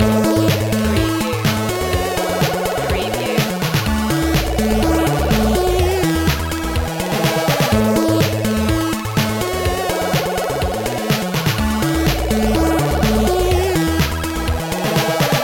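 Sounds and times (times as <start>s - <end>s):
retro video game music loop: 0.0s - 15.4s.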